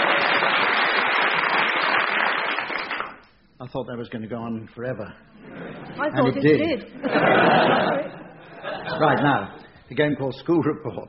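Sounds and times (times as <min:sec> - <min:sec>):
audience applause: 0:00.0 - 0:03.2
speech: 0:03.6 - 0:08.2, 0:09.0 - 0:11.0
laughter: 0:05.4 - 0:09.6.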